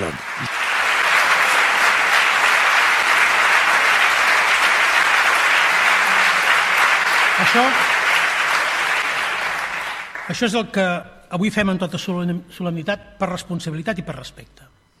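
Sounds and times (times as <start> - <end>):
crowd applause: 0.0 - 10.5
speech: 7.5 - 7.9, 10.3 - 14.6.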